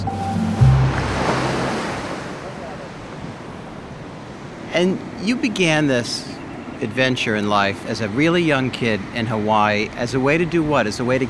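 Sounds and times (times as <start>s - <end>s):
low hum: 0.0s - 2.7s
ocean surf at low tide: 0.0s - 11.2s
speech: 4.8s - 11.2s.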